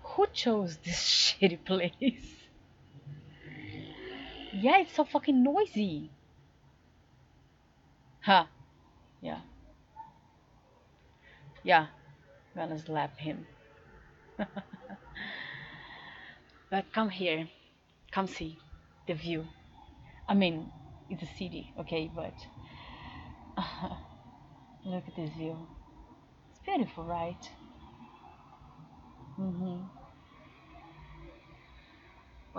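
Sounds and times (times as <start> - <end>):
city noises: 0.0 - 32.5
laughter: 14.4 - 15.7
woman moaning with Brazilian accent: 29.4 - 29.9.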